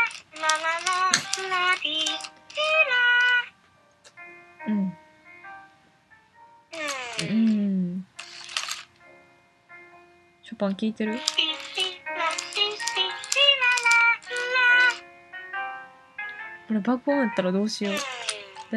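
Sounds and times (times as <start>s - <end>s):
electronic Furby toy chirping and babbling: 0.0s - 3.5s, 6.8s - 7.6s, 8.2s - 8.9s, 11.1s - 15.0s, 17.8s - 18.7s
speech: 10.6s - 11.4s, 16.8s - 18.7s.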